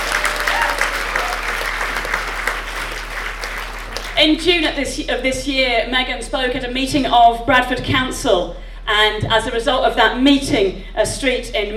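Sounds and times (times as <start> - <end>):
audience applause: 0.0 - 4.3
speech: 4.2 - 11.7.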